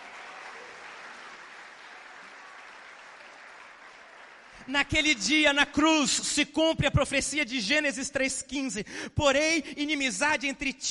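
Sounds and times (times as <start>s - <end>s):
audience applauding: 0.0s - 5.0s
speech: 4.7s - 10.8s.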